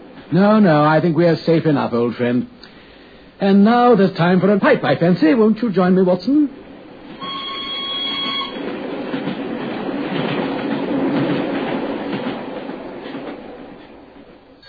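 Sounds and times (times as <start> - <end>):
train carriage thundering past with roar and rattle: 0.0 - 14.6
speech: 0.3 - 2.6, 3.4 - 6.6
high whistling tones: 7.2 - 8.6.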